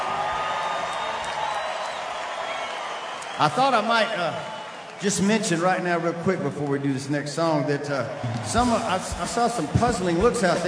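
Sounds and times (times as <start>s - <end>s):
audience applause: 0.0s - 5.8s, 8.1s - 10.6s
speech: 3.4s - 10.6s.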